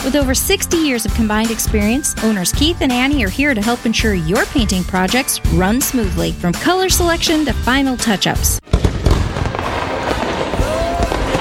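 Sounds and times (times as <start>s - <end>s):
speech: 0.0s - 8.8s
fireworks exploding: 8.6s - 11.3s.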